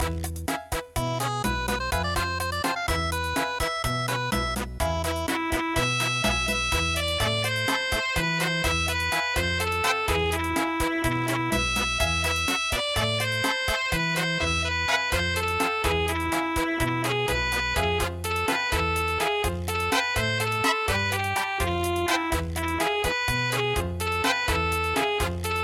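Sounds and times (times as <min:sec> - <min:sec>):
cha cha cha music: 0:00.0 - 0:25.6.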